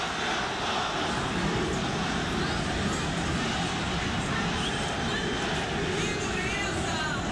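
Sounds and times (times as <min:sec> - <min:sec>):
stadium crowd booing after a match: 0:00.0 - 0:07.2.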